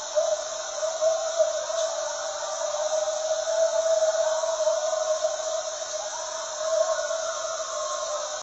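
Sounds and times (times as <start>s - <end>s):
coyotes howling: 0.0s - 8.4s.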